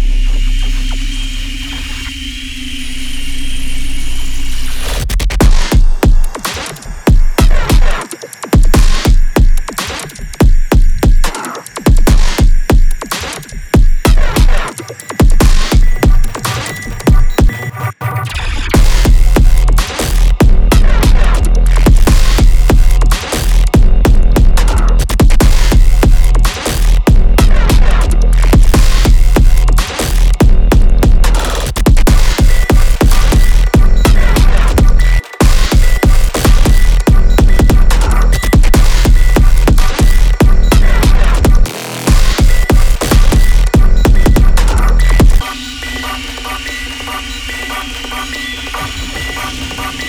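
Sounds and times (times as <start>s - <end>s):
deconstructed glitch sample sounds: 0.1s - 50.0s.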